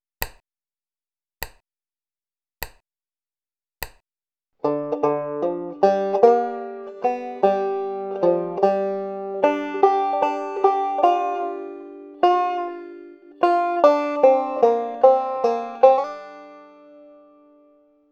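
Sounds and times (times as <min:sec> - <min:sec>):
banjo lick with blue notes: 0:04.6 - 0:18.0.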